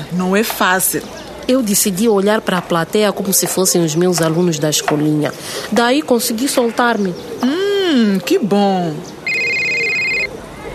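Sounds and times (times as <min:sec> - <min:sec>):
speech: 0:00.1 - 0:09.2
telephone electronic trill ringing: 0:09.2 - 0:10.3.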